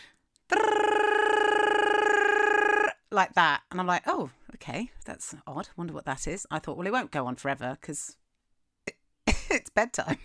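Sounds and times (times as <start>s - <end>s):
person imitating an alarm going off: 0.5s - 3.0s
speech: 3.2s - 8.2s, 9.5s - 10.2s.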